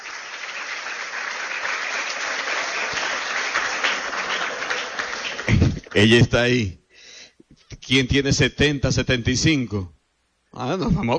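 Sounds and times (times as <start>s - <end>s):
audience applause: 0.0s - 6.3s
speech: 6.0s - 6.8s, 7.9s - 11.1s.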